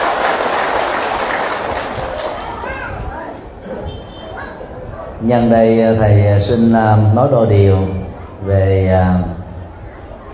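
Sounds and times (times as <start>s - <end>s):
crowd applauding: 0.0s - 2.7s
speech: 5.2s - 9.4s.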